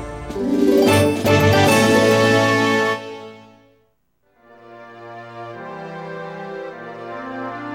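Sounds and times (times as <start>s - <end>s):
harp: 0.0s - 3.0s.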